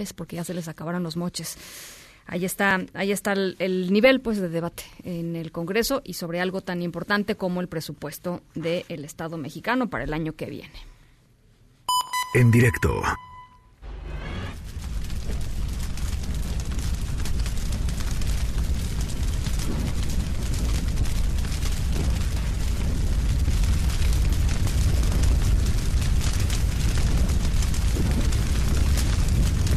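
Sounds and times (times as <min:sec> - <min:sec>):
speech: 0:00.0 - 0:10.9, 0:12.3 - 0:13.2
fire burning: 0:13.8 - 0:29.7.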